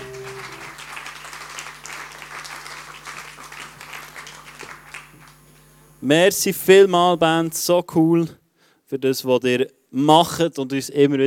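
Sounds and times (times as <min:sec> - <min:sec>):
audience applauding a band: 0:00.0 - 0:05.4
speech: 0:06.0 - 0:11.2.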